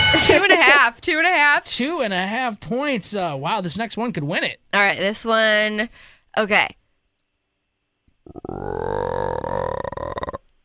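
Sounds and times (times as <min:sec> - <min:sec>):
speech: 0:00.7 - 0:06.8, 0:08.3 - 0:09.9
frog croaking: 0:08.2 - 0:10.5.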